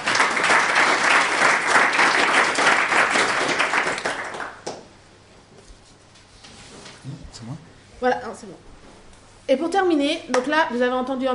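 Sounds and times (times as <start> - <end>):
audience applauding a speaker: 0.0 - 4.8
speech: 9.5 - 11.3.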